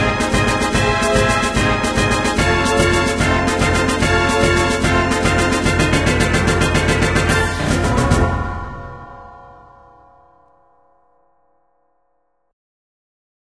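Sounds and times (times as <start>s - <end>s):
battle music: 0.0s - 10.5s.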